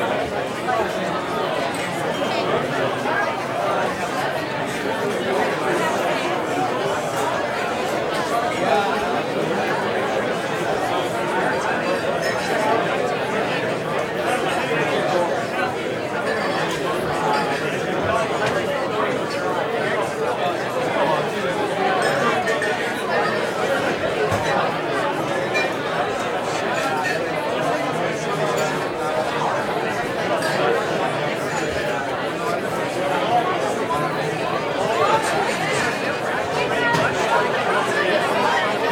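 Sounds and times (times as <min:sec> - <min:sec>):
crowd walla in a busy roadhouse bar pub restaurant: 0:00.0 - 0:38.8.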